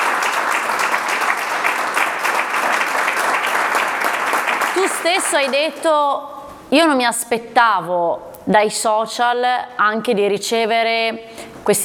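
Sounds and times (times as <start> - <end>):
applause: 0.0 - 6.0
speech: 4.8 - 11.8.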